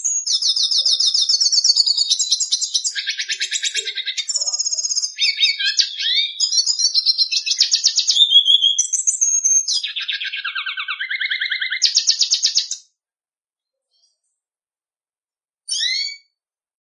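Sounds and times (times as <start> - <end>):
red siskin singing with twittering phrases, chirps, trills and buzzy notes: 0.0 - 12.8, 15.7 - 16.3.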